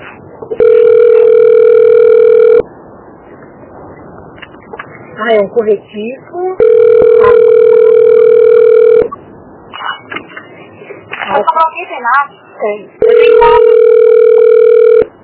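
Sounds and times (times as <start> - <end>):
telephone dial tone: 0.5 - 2.7, 6.6 - 9.1, 13.0 - 15.1
speech: 5.2 - 7.0, 11.4 - 14.0.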